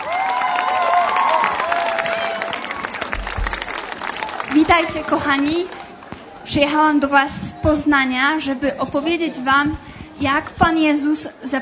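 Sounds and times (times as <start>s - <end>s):
applause and cheering: 0.0s - 6.4s
speech: 4.7s - 5.8s, 6.5s - 11.5s.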